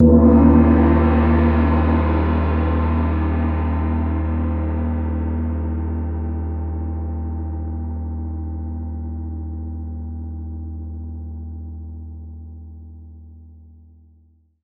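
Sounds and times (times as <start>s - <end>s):
mixed gongs in Wuhan PRC: 0.0s - 10.1s.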